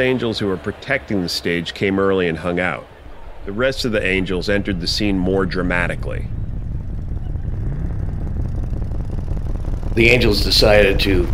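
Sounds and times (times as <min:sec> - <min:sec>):
speech: 0:00.0 - 0:06.4, 0:10.0 - 0:11.3
motorcycles riding through a crowd: 0:02.8 - 0:11.3.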